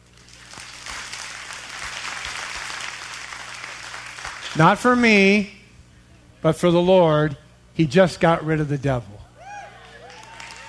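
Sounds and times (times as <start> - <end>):
audience applause: 0.0 - 4.8, 9.7 - 10.6
speech: 4.6 - 5.6, 6.4 - 9.2.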